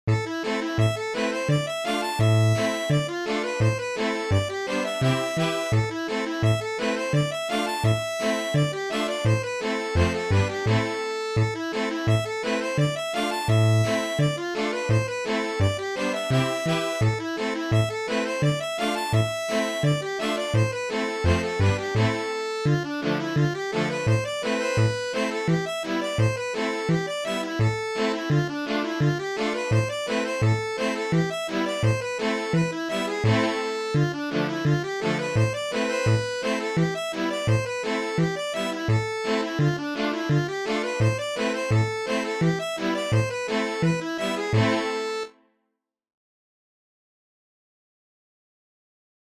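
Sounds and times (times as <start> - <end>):
accordion: 0.0 - 45.4.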